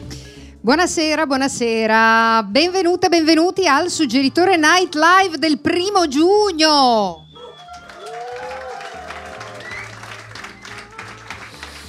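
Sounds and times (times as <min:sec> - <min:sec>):
speech: 0:00.6 - 0:07.2
audience applause: 0:07.4 - 0:11.8.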